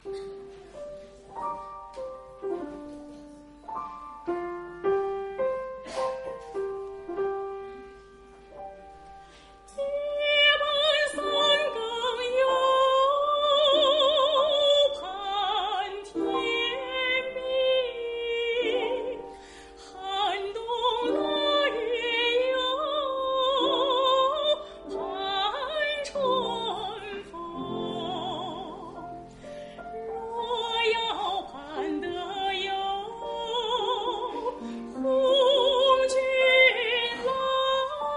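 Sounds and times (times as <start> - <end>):
folk song: 0.0 - 38.1.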